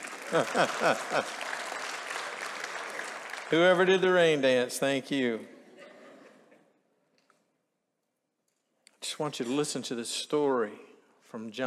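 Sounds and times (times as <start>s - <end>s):
laughter: 0.0s - 1.8s, 5.6s - 6.7s
audience applauding: 0.0s - 4.6s
speech: 0.3s - 1.5s, 3.5s - 5.6s, 9.2s - 11.6s.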